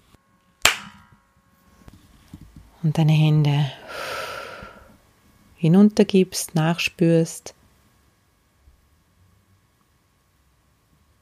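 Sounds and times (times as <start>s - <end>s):
hand clap: 0.6s - 1.1s
speech: 2.8s - 3.8s, 5.6s - 7.6s.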